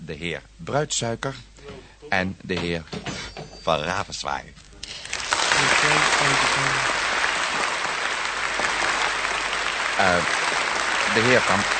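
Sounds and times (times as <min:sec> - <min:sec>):
speech: 0:00.1 - 0:05.0, 0:05.8 - 0:06.9, 0:10.0 - 0:11.7
audience applause: 0:04.9 - 0:11.7.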